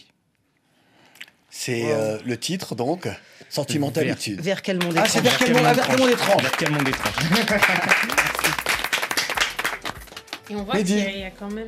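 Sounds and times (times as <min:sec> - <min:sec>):
speech: 0:01.6 - 0:08.8, 0:10.5 - 0:11.6
audience applause: 0:04.8 - 0:10.5
laughter: 0:05.0 - 0:08.9.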